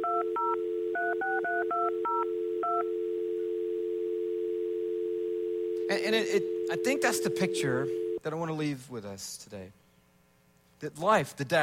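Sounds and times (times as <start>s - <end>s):
telephone number being dialed, touch tones: 0.0s - 8.2s
speech: 5.9s - 9.8s, 10.8s - 11.6s.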